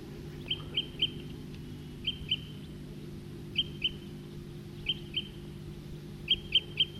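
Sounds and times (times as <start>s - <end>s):
male bird calling: 0.2s - 2.9s, 3.5s - 6.9s.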